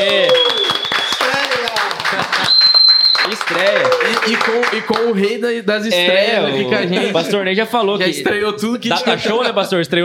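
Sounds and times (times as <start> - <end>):
studio applause: 0.0 - 5.4
laughter: 1.7 - 2.6, 6.4 - 7.5, 8.8 - 10.0
speech: 5.1 - 10.0.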